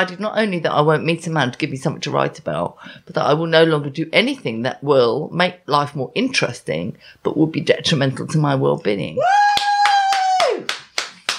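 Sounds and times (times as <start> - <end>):
speech: 0.0 - 9.7
high-pitched whoop of a cheer: 9.2 - 10.8
rhythmic clapping: 9.5 - 11.3.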